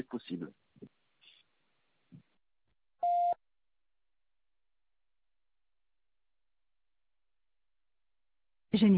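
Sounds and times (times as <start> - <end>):
answering machine beep: 3.0 - 3.4.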